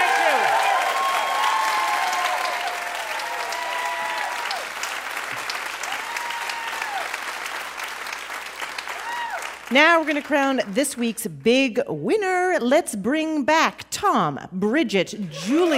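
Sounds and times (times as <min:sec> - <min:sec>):
audience whistles and cheers: 0:00.0 - 0:04.7, 0:05.8 - 0:07.2, 0:08.9 - 0:09.6
audience applause: 0:00.0 - 0:10.6
speech: 0:09.7 - 0:15.7.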